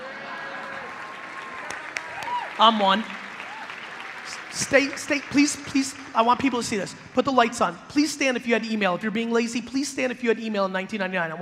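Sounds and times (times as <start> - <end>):
audience at a talk clapping: 0.0 - 7.7
speech: 2.6 - 3.2, 4.6 - 11.4.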